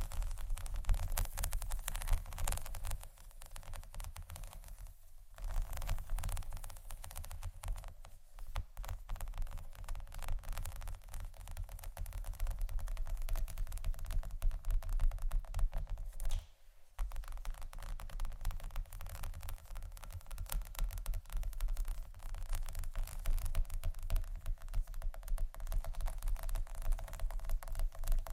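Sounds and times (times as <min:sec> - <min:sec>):
scratching and tapping: 0:00.0 - 0:28.3.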